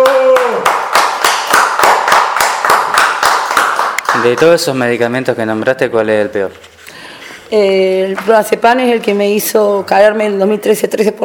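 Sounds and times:
group clapping in a steady rhythmic beat: 0:00.0 - 0:04.8
speech: 0:04.2 - 0:06.7, 0:07.5 - 0:11.2.

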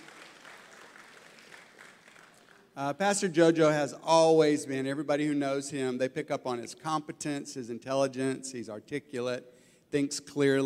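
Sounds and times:
audience applause: 0:00.0 - 0:02.7
speech: 0:02.8 - 0:10.6.

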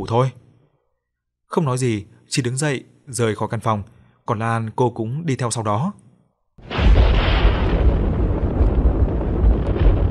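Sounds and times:
speech: 0:00.0 - 0:00.4, 0:01.5 - 0:06.0
loud thunderclap with heavy rumble: 0:06.6 - 0:10.1.

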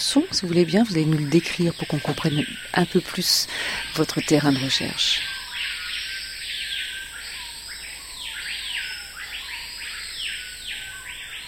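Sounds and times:
speech: 0:00.0 - 0:05.3
high-pitched insect drone in neotropical forest: 0:00.0 - 0:11.4
screaming pihas Lipaugus vociferans calling at a lek in French Guiana: 0:00.0 - 0:11.4.

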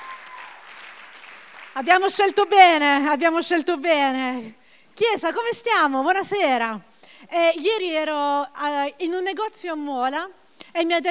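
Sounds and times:
congregation at a Sunday church meeting applauding: 0:00.0 - 0:02.8
speech: 0:01.8 - 0:11.1.

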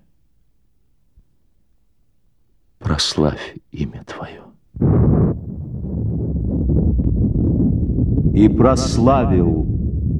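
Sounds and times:
speech: 0:03.0 - 0:05.1, 0:08.4 - 0:09.8
deep heavy rumble of thunder: 0:04.8 - 0:10.1.

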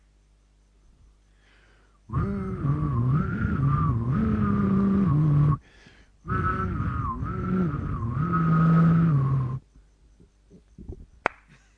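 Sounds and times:
person whistling a tango tune in a whistling competition: 0:02.2 - 0:05.6, 0:06.3 - 0:09.6.

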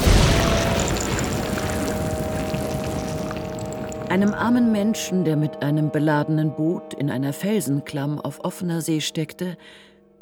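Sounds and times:
pouring rain: 0:00.0 - 0:04.4
thunder: 0:00.0 - 0:04.4
speech: 0:04.1 - 0:10.2.

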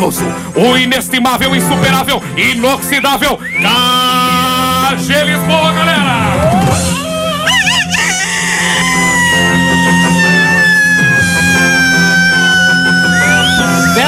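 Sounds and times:
speech: 0:00.0 - 0:06.9
rooster crowing: 0:07.4 - 0:14.0.

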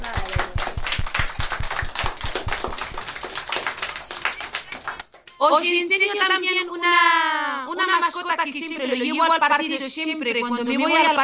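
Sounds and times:
applause for a group of children: 0:00.0 - 0:05.4
speech: 0:05.4 - 0:11.2.

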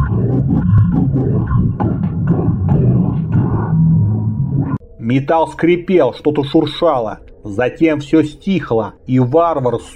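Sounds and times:
very low deep growl: 0:00.0 - 0:04.8
speech: 0:05.1 - 0:09.9.

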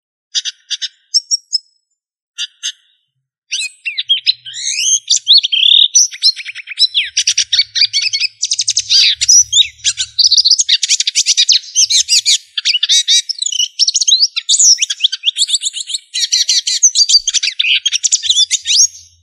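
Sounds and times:
bird song: 0:00.3 - 0:19.2.

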